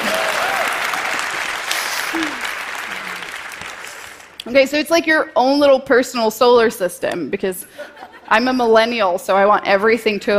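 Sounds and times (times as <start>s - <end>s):
audience clapping hands: 0.0s - 4.5s
speech: 4.5s - 10.3s.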